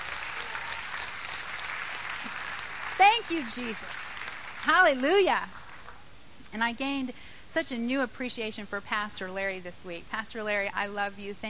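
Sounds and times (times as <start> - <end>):
church congregation clapping as a clap offering during a service: 0.0 - 6.0
speech: 3.3 - 4.0, 4.6 - 5.6, 6.5 - 11.4.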